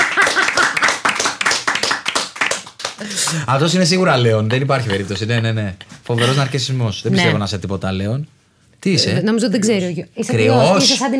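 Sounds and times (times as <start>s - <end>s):
loud audience clapping: 0.0s - 3.6s
speech: 3.0s - 11.1s.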